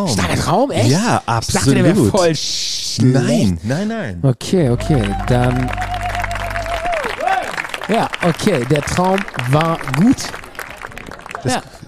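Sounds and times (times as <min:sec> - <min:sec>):
speech: 0:00.0 - 0:05.9, 0:07.9 - 0:10.4, 0:11.4 - 0:11.7
applause: 0:04.8 - 0:11.8.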